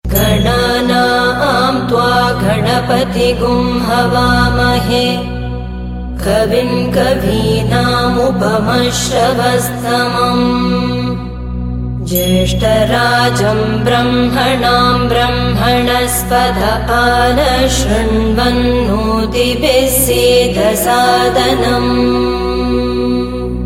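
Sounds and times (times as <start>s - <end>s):
person chanting a mantra: 0.0s - 23.6s.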